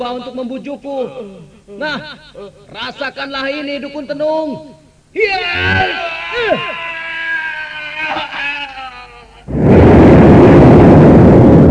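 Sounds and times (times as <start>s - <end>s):
speech: 0.0s - 6.8s
explosion sound effect: 9.5s - 11.6s.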